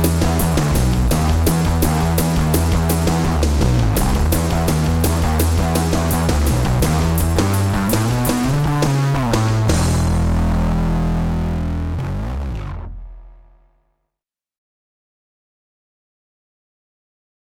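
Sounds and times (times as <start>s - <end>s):
bass tone demo: 0.0s - 13.8s.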